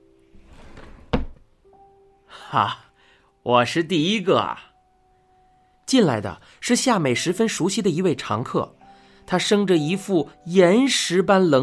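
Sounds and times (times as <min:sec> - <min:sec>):
wooden door being pushed open: 0:00.4 - 0:01.4
speech: 0:02.5 - 0:02.8, 0:03.4 - 0:04.7, 0:05.9 - 0:11.6.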